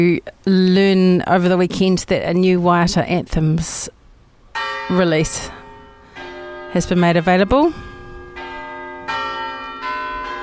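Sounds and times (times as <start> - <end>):
speech: 0.0 - 4.0, 4.9 - 5.6, 6.7 - 7.9
town hall clock bell chiming: 4.6 - 10.4.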